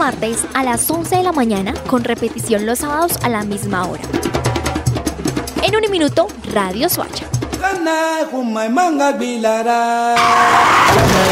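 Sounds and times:
speech: 0.1 - 4.4, 5.6 - 11.3
car skid screeching: 10.2 - 11.3.

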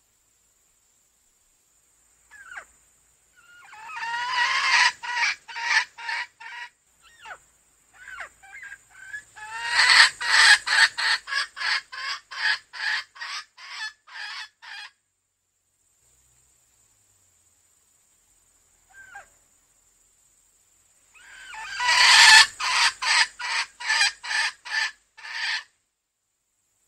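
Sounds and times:
female junglefowl clucking: 2.3 - 2.7, 3.4 - 7.4, 8.0 - 15.0, 18.9 - 19.4, 21.2 - 25.7.

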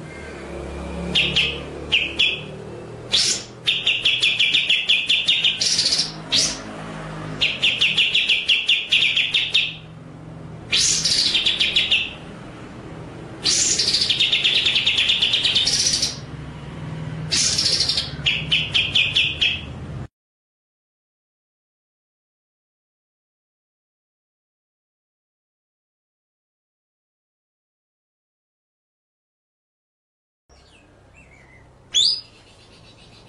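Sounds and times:
white-rumped shama song: 1.0 - 2.5, 3.1 - 6.6, 7.4 - 9.9, 10.7 - 12.2, 13.4 - 16.3, 17.3 - 19.8, 30.5 - 33.2.

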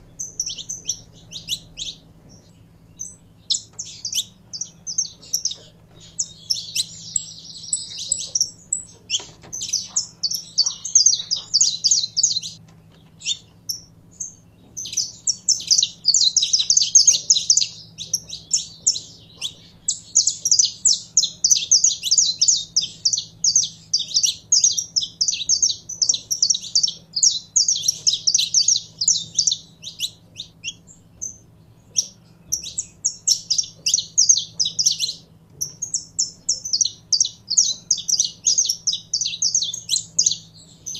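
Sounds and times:
canary singing: 0.0 - 40.9
soft low hum: 0.0 - 40.9.

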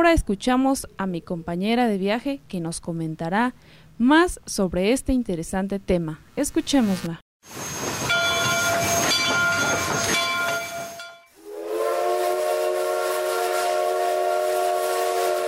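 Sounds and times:
speech: 0.0 - 7.8
train hissing and rumbling at a station: 7.5 - 15.4
steam whistle: 7.6 - 15.4.

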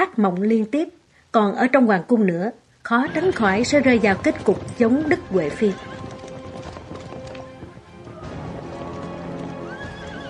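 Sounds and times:
speech: 0.0 - 6.0
horses of a long imperial cavalry procession clopping on their hooves: 2.9 - 10.2.

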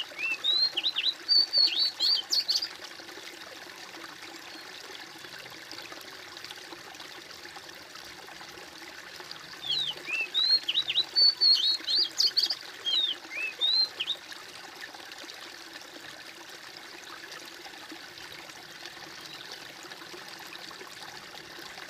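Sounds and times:
bird singing high twisting whistled chirps: 0.2 - 2.7, 9.6 - 14.2.

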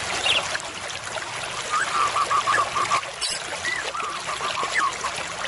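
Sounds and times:
white-rumped shama singing: 0.2 - 0.5, 1.5 - 5.3.

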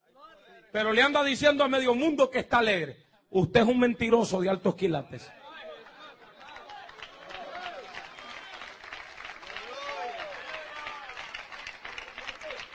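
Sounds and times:
speech: 0.7 - 5.4
audience applause: 5.7 - 12.7.

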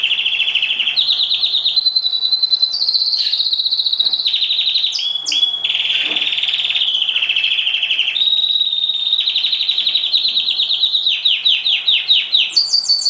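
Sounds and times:
oriental magpie-robin song: 0.0 - 13.0.

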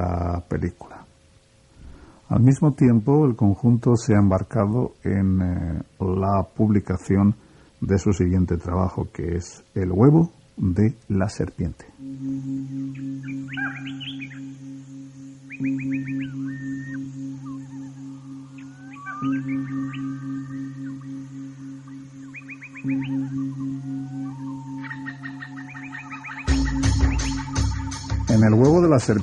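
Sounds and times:
speech: 0.0 - 1.0, 2.3 - 12.8, 29.0 - 29.2
low sustained drone of ambient music: 11.9 - 29.2
chirping, trilling birdsong in an ambient music track: 12.0 - 29.2.

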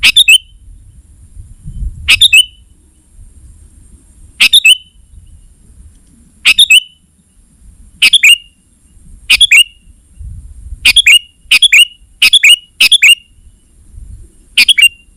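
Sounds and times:
sooty-headed bulbul calls: 0.0 - 0.6, 2.0 - 2.7, 4.4 - 5.4, 6.4 - 7.1, 8.0 - 8.6, 9.3 - 9.9, 10.8 - 13.6, 14.5 - 15.1.

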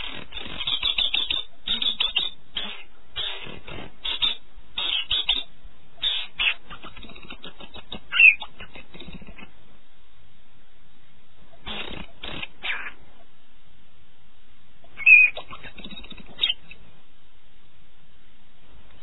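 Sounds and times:
canary singing a high warbling trill in the early morning: 0.0 - 9.5, 11.5 - 13.0, 14.8 - 16.8.

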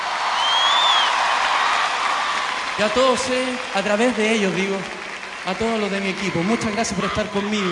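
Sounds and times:
audience applause at a live festival concert in Viña del Mar: 0.0 - 7.6
high whistle: 0.4 - 1.1
speech: 2.8 - 7.6.

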